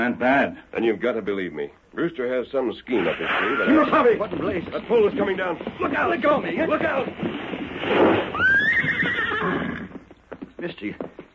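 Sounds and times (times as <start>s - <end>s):
speech: 0.0s - 8.5s, 10.6s - 11.1s
horse neighing: 2.9s - 4.9s, 7.8s - 10.0s
broad rustling noise: 2.9s - 8.9s.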